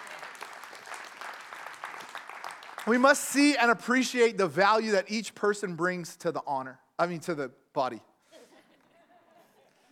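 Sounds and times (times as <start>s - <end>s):
audience clapping: 0.0s - 3.7s
speech: 2.8s - 8.1s.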